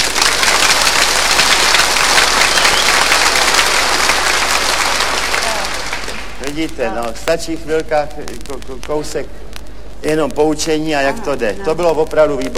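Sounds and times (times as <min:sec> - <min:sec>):
frenzied applause from a large audience: 0:00.0 - 0:06.9
speech: 0:06.6 - 0:12.5.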